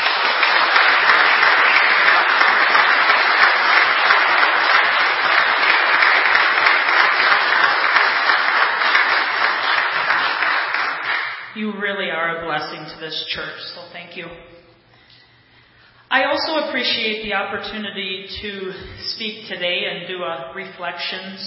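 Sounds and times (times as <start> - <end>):
audience applauding the choir: 0.0 - 11.5
speech: 12.6 - 14.5, 16.1 - 21.4.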